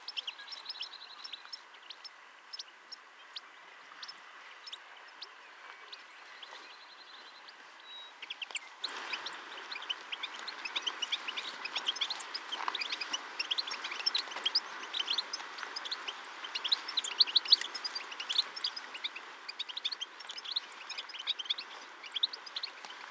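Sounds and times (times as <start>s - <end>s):
European goldfinch calls: 7.9s - 23.0s.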